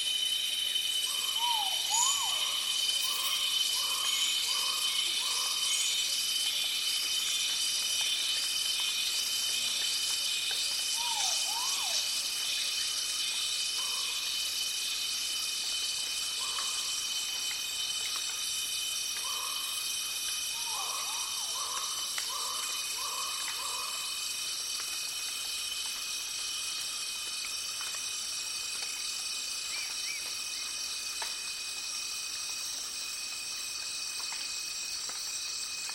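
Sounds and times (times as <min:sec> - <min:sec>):
tropical forest soundscape in Taiwan: 0:00.0 - 0:35.9.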